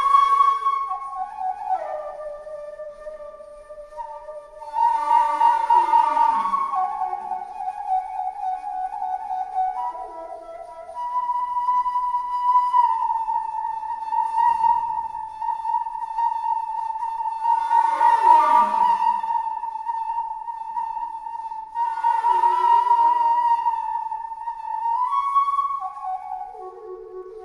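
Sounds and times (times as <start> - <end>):
noisy flute: 0.0 - 27.4.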